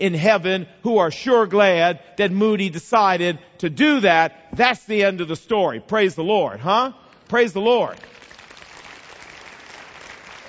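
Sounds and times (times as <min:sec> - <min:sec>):
speech: 0:00.0 - 0:08.2
church congregation clapping after a sermon story: 0:07.2 - 0:10.4.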